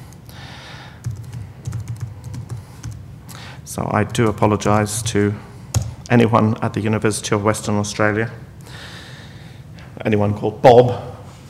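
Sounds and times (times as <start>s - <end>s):
typing a username on a computer keyboard into a login page: 1.0s - 3.0s, 4.1s - 6.0s
speech: 3.7s - 5.5s, 6.1s - 8.5s, 10.0s - 11.1s.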